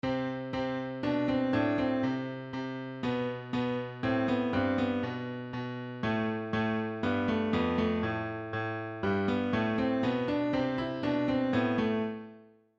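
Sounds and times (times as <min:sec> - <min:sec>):
piano: 0:00.0 - 0:12.7.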